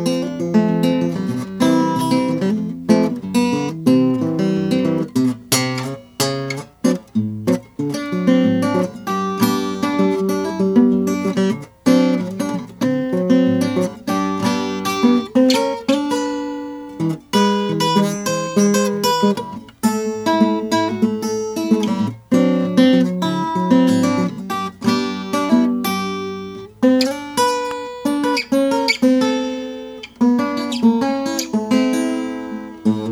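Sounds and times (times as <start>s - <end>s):
1945 Harmony Stella H1105 sunburst guitar: 0.0s - 33.1s.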